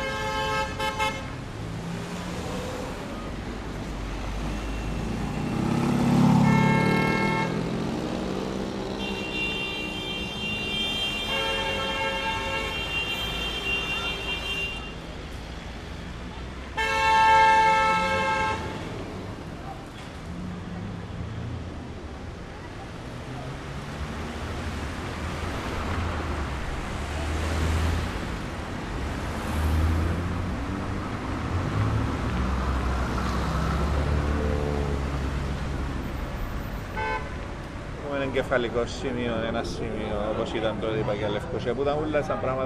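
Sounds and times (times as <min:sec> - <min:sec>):
vehicle horns honking: 0:00.0 - 0:01.4, 0:04.6 - 0:07.8, 0:08.9 - 0:15.0, 0:16.8 - 0:18.9, 0:36.8 - 0:37.4
cars passing: 0:00.0 - 0:42.6
city traffic hum: 0:00.0 - 0:42.6
speech: 0:38.3 - 0:42.6.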